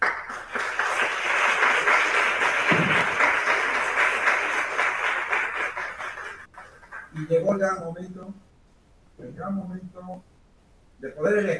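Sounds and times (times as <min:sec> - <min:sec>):
audience applause: 0:00.0 - 0:07.1
speech: 0:07.3 - 0:08.5, 0:09.2 - 0:10.3, 0:11.0 - 0:11.5.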